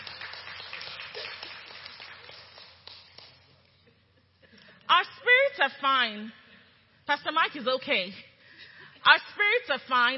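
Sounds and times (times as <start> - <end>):
audience clapping for actors: 0.0 - 3.6
speech: 4.9 - 6.4, 7.1 - 8.3, 9.0 - 10.1.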